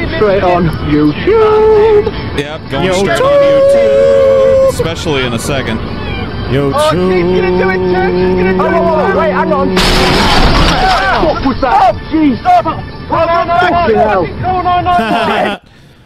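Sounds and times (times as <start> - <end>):
speech: 0.2 - 15.7
car crash: 9.7 - 12.0
laughter: 14.8 - 15.7.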